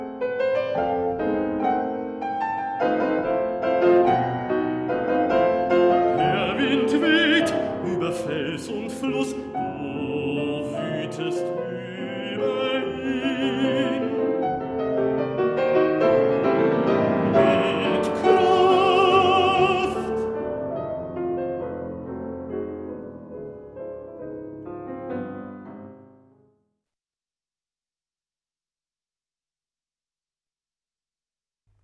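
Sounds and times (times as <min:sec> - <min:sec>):
piano accompaniment: 0:00.0 - 0:26.8
baritone singing lieder: 0:05.9 - 0:14.5, 0:15.9 - 0:20.3.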